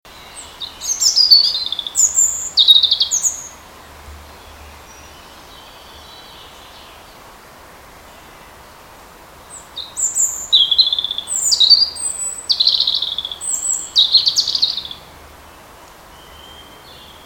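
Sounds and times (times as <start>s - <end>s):
European robin singing: 0.1s - 17.2s.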